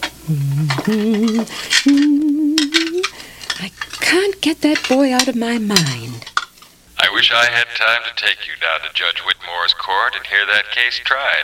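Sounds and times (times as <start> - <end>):
washing dishes: 0.0 - 6.6
cutlery and plates clinking: 0.0 - 6.7
speech: 0.3 - 2.4, 3.6 - 6.3, 7.1 - 11.4.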